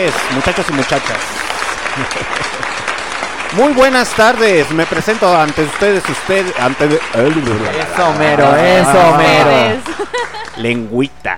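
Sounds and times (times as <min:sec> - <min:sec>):
speech: 0:00.0 - 0:01.4, 0:02.0 - 0:02.7, 0:03.5 - 0:11.3
audience clapping: 0:00.0 - 0:11.1
laughter: 0:01.6 - 0:03.7, 0:07.2 - 0:10.9.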